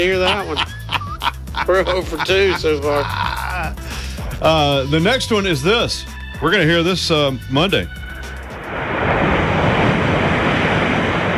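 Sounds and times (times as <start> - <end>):
speech: 0.0 - 0.8, 1.6 - 8.0
laughter: 0.0 - 4.4
waves lapping on the shore: 8.2 - 11.3.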